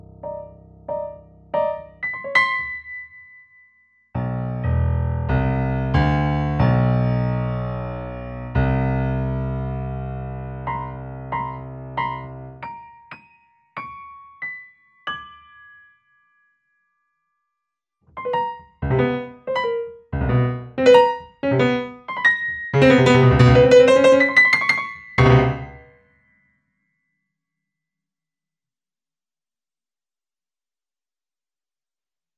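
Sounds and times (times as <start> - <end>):
piano pieces: 0.0 - 16.2, 18.1 - 26.0.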